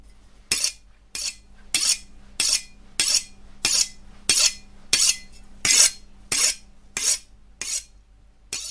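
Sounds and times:
knife sharpened on a red stone: 0.5s - 7.9s, 8.5s - 8.7s.

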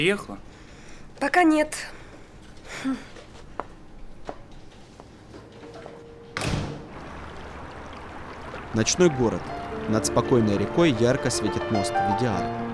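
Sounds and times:
speech: 0.0s - 0.5s, 1.2s - 2.0s, 2.7s - 3.1s, 8.7s - 12.7s
office door slamming shut: 6.4s - 7.0s.

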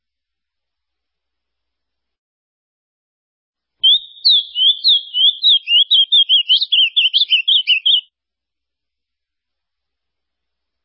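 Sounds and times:
ultramarine grosbeak song: 3.8s - 8.1s.

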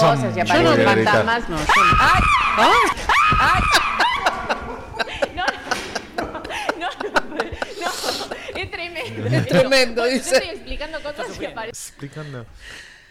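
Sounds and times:
speech: 0.0s - 3.8s, 8.8s - 12.9s
laughter: 0.5s - 11.7s
girl screaming in fright: 1.7s - 4.2s.

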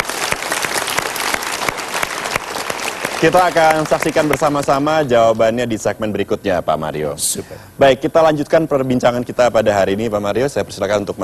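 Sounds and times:
studio audience applause: 0.0s - 4.7s
speech: 3.2s - 11.2s.

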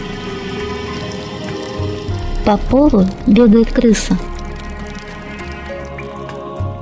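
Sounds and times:
steam hissing from pipes in a sewer shaft: 0.0s - 2.4s
water spraying from pipes in a sewer shaft: 0.0s - 6.7s
speech: 2.4s - 4.3s.

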